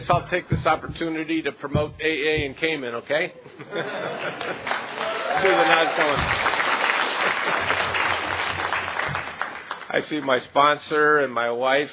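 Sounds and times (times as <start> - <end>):
speech: 0.1 - 6.8, 10.0 - 11.9
laughter: 3.4 - 6.2
audience clapping: 4.2 - 10.4.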